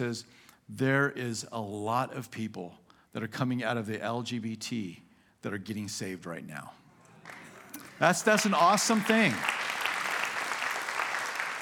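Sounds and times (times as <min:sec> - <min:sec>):
speech: 0:00.0 - 0:06.8, 0:08.0 - 0:09.6
audience clapping: 0:07.2 - 0:11.6.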